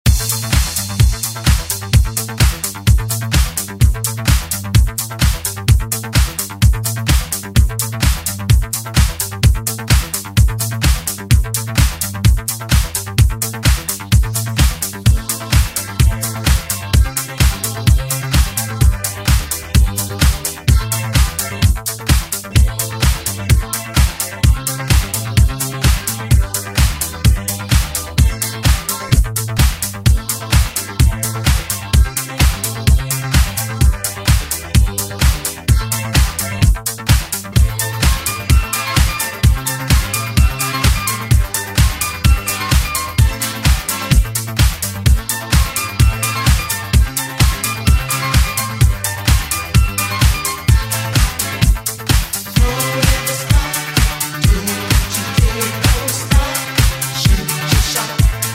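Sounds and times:
eighties drum beat: 0.0 - 58.5.

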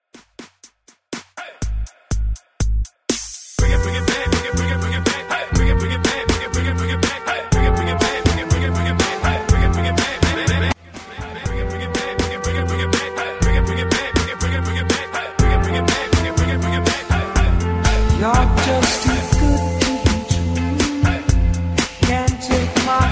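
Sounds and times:
hyped 60s style intro music: 2.9 - 23.1.

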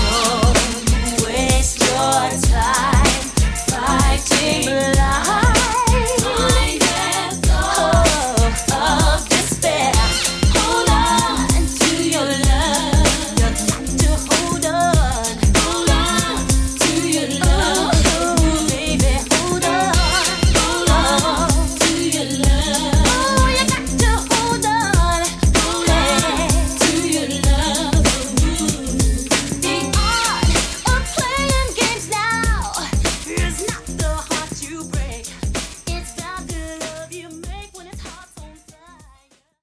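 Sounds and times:
90s drum beat at 96 bpm: 0.0 - 38.6.

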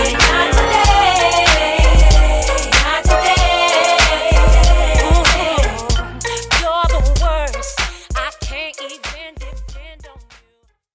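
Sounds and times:
2000s R&B megamix: 0.0 - 8.6.

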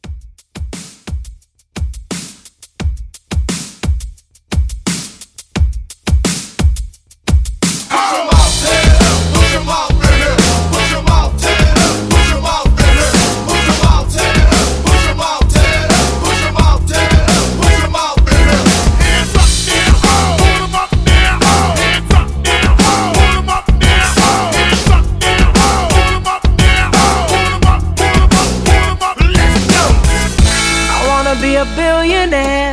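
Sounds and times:
throwback hype drum beat: 0.0 - 32.6.

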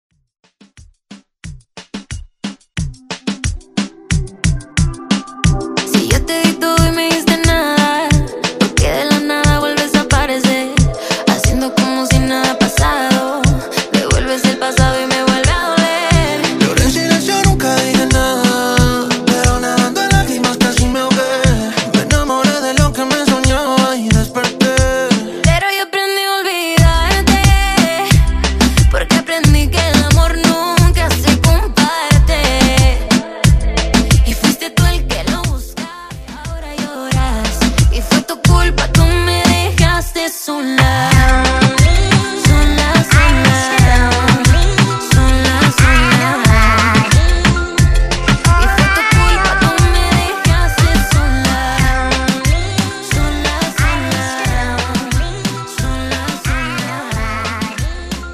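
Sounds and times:
Latin reggaeton Redrum drum machine beat: 0.6 - 58.3.

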